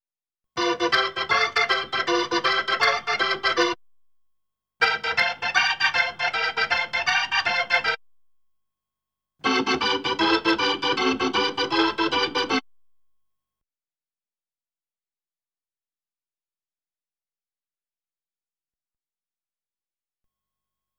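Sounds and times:
Hammond B3 organ: 0:00.6 - 0:03.8, 0:04.8 - 0:08.0, 0:09.4 - 0:12.6.

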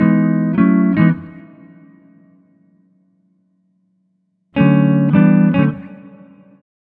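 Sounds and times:
multiple swing electric guitars in E at 105 BPM: 0:00.0 - 0:01.6, 0:04.6 - 0:06.2.

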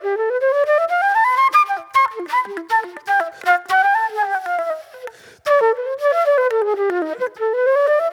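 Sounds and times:
old soul flute music: 0:00.0 - 0:08.1.

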